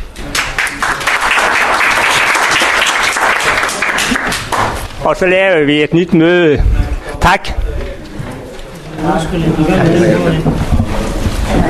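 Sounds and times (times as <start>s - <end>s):
applause: 0.2s - 4.9s
speech: 5.1s - 7.6s, 9.0s - 10.8s.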